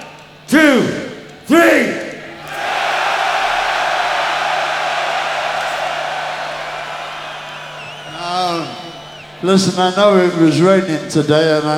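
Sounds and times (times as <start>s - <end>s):
speech: 0.5s - 2.0s, 9.4s - 11.7s
huge stadium crowd roaring and screaming: 1.5s - 11.2s.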